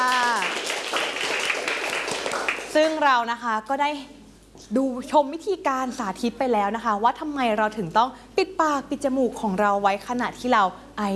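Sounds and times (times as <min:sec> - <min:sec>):
classroom applause for a classmate: 0:00.0 - 0:03.0
speech: 0:02.8 - 0:11.1.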